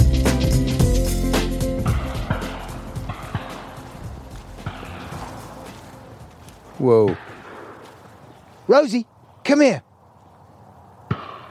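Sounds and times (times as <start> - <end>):
hiss: 0.0 - 11.2
gunshot from hunting: 1.9 - 3.8, 4.6 - 5.3, 7.0 - 7.9, 11.1 - 11.4
speech: 6.8 - 7.3, 8.7 - 9.9.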